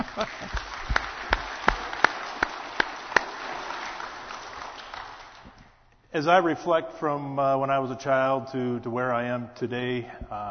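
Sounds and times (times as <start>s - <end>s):
applause for veterans: 0.0s - 5.6s
speech: 6.2s - 10.4s.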